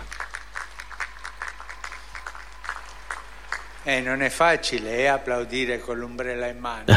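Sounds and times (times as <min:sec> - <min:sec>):
crowd applause: 0:00.0 - 0:05.5.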